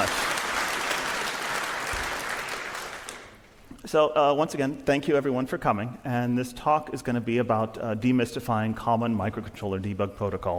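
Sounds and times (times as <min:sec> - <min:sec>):
audience applause: 0:00.0 - 0:03.4
speech: 0:03.9 - 0:10.5.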